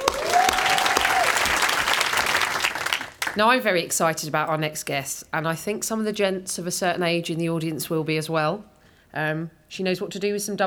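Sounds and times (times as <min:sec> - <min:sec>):
festival audience applause after a stand-up comedy set: 0:00.0 - 0:03.4
speech: 0:03.4 - 0:10.6.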